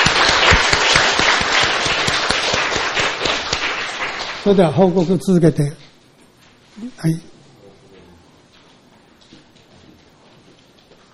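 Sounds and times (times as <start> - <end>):
welcoming applause: 0.0 - 5.0
speech: 4.4 - 5.9, 6.8 - 7.3.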